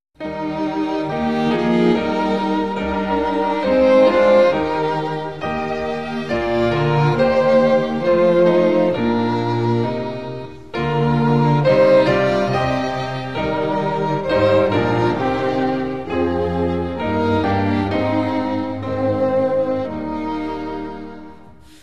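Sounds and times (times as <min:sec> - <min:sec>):
Spanish vocal and instrumental hymns: 0:00.2 - 0:21.8.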